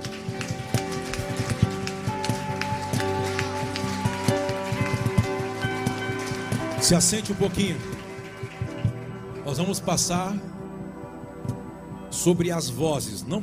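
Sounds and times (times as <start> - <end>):
audience applause: 0.0 - 9.8
speech: 6.8 - 8.0, 9.5 - 10.6, 12.2 - 13.4.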